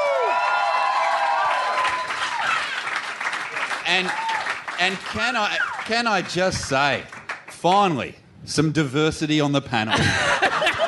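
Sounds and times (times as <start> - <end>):
live audience at a comedy panel show applauding and cheering a comedian guest: 0.0 - 7.9
speech: 3.9 - 4.2, 4.8 - 10.3
laughter: 9.9 - 10.8.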